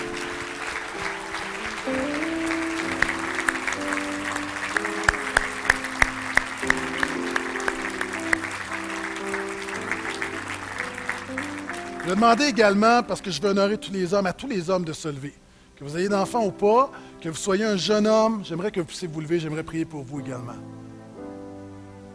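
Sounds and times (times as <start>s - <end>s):
audience applause: 0.0s - 13.3s
speech: 12.1s - 20.8s.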